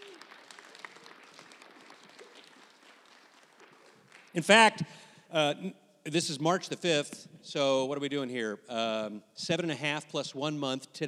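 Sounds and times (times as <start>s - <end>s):
crowd applause: 0.0s - 4.4s
speech: 4.4s - 11.0s.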